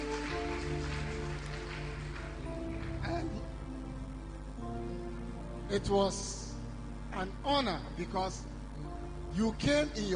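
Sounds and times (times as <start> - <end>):
audience clapping: 0.0 - 3.8
speech: 5.7 - 6.4, 7.1 - 10.1.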